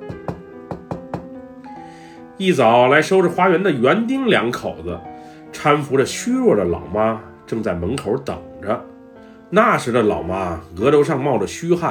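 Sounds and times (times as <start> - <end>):
urgent knocking on a door: 0.0 - 1.4
speech: 2.4 - 8.9, 9.5 - 11.8.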